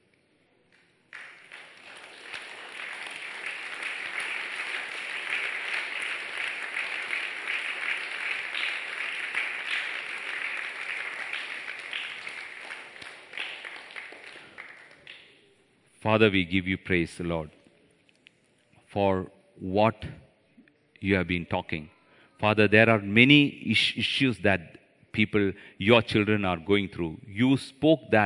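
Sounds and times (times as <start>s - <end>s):
crowd clapping: 0.8s - 15.4s
speech: 16.0s - 17.6s, 18.9s - 20.2s, 21.0s - 28.2s.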